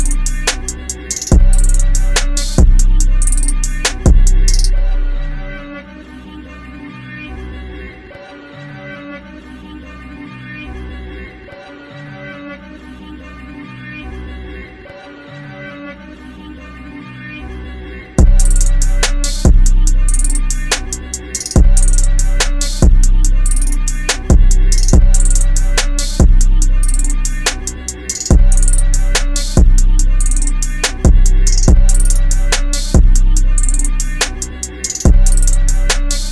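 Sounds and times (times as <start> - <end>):
instrumental music: 0.0 - 5.8, 18.2 - 36.2.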